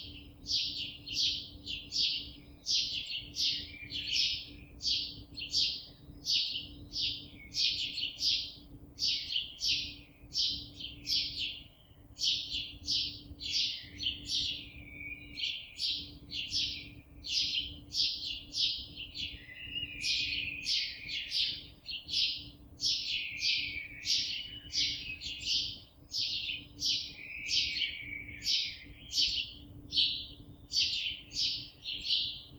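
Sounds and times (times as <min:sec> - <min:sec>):
birds: 0:00.0 - 0:32.5.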